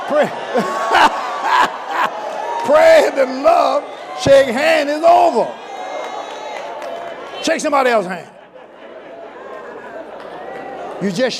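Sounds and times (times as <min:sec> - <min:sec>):
laughter: 0:00.0 - 0:02.4, 0:07.5 - 0:11.3
crowd shouting: 0:00.0 - 0:08.0
speech: 0:00.1 - 0:01.7, 0:02.6 - 0:05.6, 0:07.4 - 0:08.3, 0:11.0 - 0:11.3.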